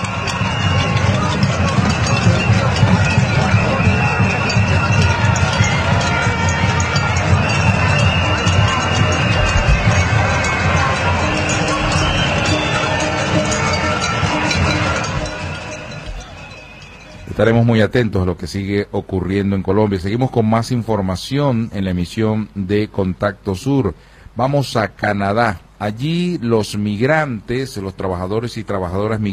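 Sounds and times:
dense protest crowd in Colombia roaring: 0:00.0 - 0:17.4
speech: 0:17.4 - 0:29.3.

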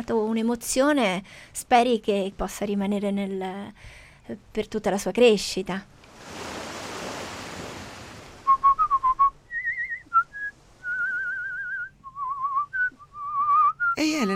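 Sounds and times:
speech: 0:00.1 - 0:06.4
surf-like noise: 0:06.0 - 0:11.9
person whistling a wandering tune: 0:08.5 - 0:14.0.

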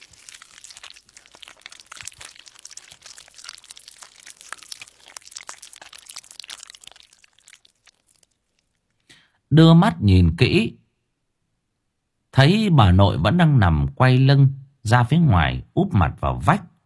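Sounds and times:
someone eating something in a house, crunching and rustling: 0:00.0 - 0:09.2
speech: 0:09.6 - 0:10.8, 0:12.4 - 0:16.7.

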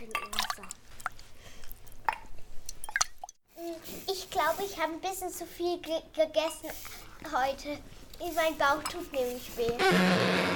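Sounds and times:
water dripping: 0:00.0 - 0:03.4
speech: 0:04.4 - 0:10.5.

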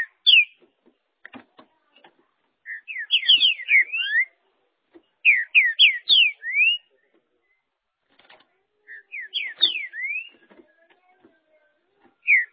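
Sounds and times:
green-winged saltator whistling song: 0:00.0 - 0:00.6, 0:02.6 - 0:04.4, 0:05.2 - 0:07.7, 0:08.9 - 0:10.5, 0:12.2 - 0:12.5.

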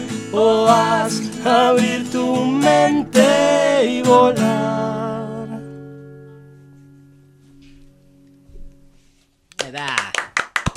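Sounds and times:
speech: 0:00.3 - 0:04.9
hosts clapping hands as manual applause: 0:09.5 - 0:10.7.

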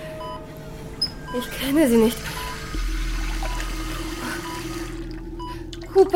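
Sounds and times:
low constant hum: 0:00.0 - 0:06.1
speech: 0:01.3 - 0:02.5, 0:06.0 - 0:06.1
water pouring into a glass in a sick bay: 0:02.3 - 0:06.1.

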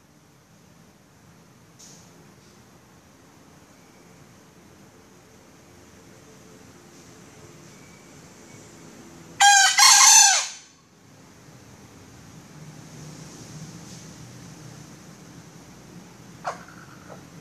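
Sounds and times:
female junglefowl giving a raspy crow-like call: 0:09.4 - 0:10.7, 0:16.4 - 0:17.3.

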